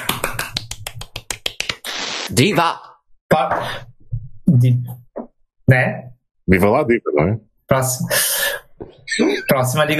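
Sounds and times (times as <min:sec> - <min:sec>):
clapping for a caller: 0:00.0 - 0:01.9
speech: 0:02.3 - 0:03.9, 0:04.6 - 0:05.0, 0:05.7 - 0:09.9.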